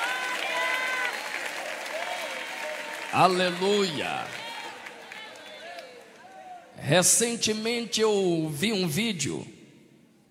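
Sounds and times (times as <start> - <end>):
sustained crowd applause: 0.0 - 6.7
faint cheering or voices: 0.0 - 6.8
speech: 3.1 - 4.4, 6.8 - 9.6.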